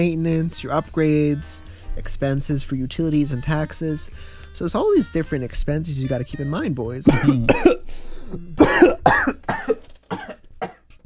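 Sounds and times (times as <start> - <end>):
speech: 0.0 - 10.4
person coughing after choking on water: 7.1 - 10.8.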